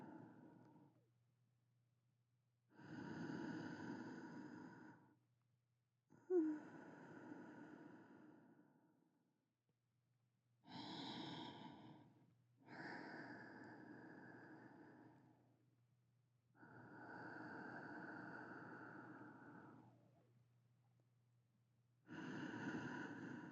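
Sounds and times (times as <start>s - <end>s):
sleeping breathing: 2.8s - 5.1s, 6.3s - 8.8s, 10.7s - 15.3s, 16.6s - 20.0s, 22.1s - 23.5s.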